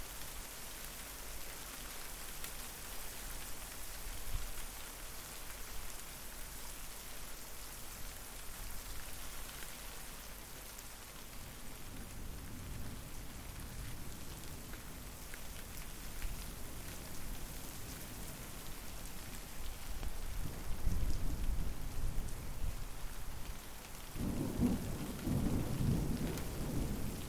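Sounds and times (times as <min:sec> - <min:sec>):
rain: 0:00.0 - 0:27.2
thunder: 0:24.2 - 0:27.2.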